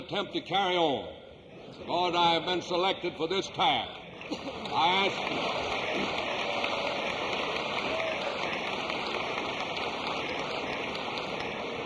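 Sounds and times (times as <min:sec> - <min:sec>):
speech: 0:00.1 - 0:06.2
audience applause from a large crowd: 0:04.2 - 0:11.8.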